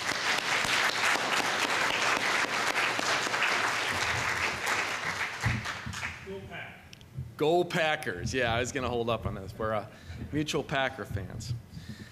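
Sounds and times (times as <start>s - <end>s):
audience applause: 0.0s - 6.2s
speech: 7.4s - 11.6s.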